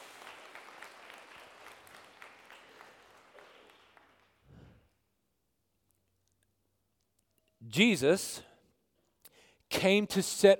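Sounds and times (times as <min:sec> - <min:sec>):
audience clapping: 0:00.0 - 0:04.8
speech: 0:07.7 - 0:08.5, 0:09.8 - 0:10.5.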